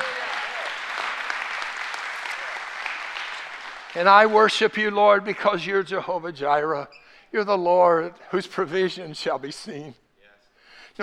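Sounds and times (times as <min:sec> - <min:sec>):
faint voices cheering: 0:00.0 - 0:00.8
crowd clapping in a large room: 0:00.0 - 0:05.9
speech: 0:03.9 - 0:10.0.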